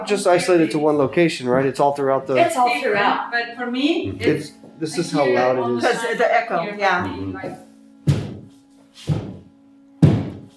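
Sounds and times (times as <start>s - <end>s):
speech: 0.0s - 7.7s
banging on a wall: 8.0s - 8.5s, 9.1s - 10.5s.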